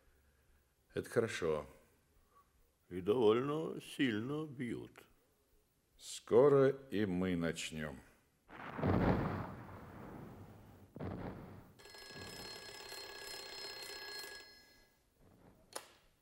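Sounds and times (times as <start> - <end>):
speech: 1.0 - 1.8, 2.9 - 5.1, 6.0 - 8.1
telephone bell ringing: 11.8 - 15.1.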